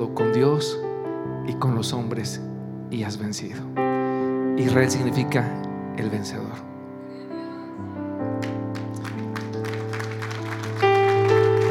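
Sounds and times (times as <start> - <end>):
speech: 0.0 - 0.9, 1.5 - 3.8, 4.6 - 6.7
audience applauding: 8.3 - 11.6.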